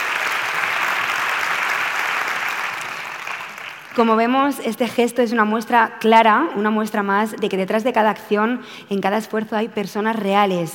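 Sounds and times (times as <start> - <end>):
audience applauding: 0.0 - 4.0
speech: 4.0 - 10.7.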